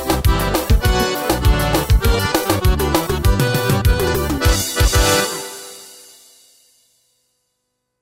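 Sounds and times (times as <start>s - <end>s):
Korg Pa vanera rhythm: 0.0s - 6.4s.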